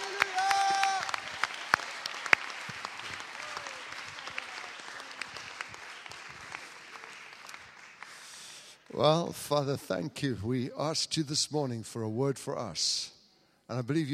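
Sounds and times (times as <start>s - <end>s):
audience clapping and applauding: 0.0s - 9.2s
speech: 9.0s - 14.1s.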